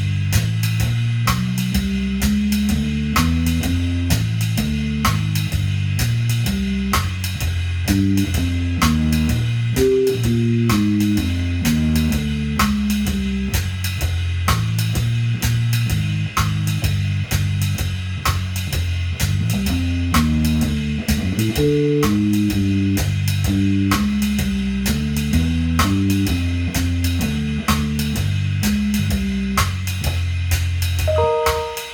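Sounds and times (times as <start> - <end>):
F blues full backing track: 0.0 - 31.9.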